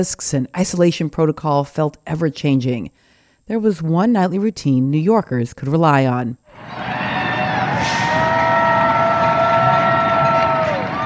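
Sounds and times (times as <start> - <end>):
speech: 0.0 - 7.0
high whistling or horn-like tones: 6.5 - 11.0
residents cheering and shouting: 6.5 - 11.0.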